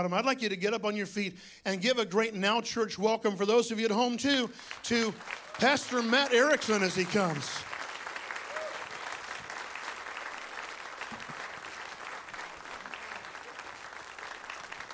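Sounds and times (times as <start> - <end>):
speech: 0.0 - 7.7
audience clapping in praise: 4.2 - 14.9.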